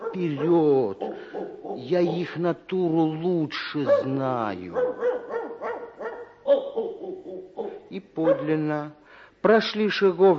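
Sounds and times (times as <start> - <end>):
dogs barking: 0.0 - 2.4, 3.8 - 8.8
speech: 0.2 - 5.1, 7.9 - 10.3.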